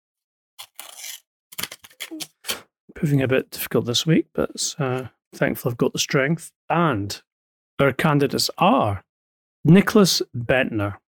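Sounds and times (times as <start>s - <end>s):
envelope being opened, tearing and rustling: 0.6s - 2.6s
speech: 3.0s - 11.0s.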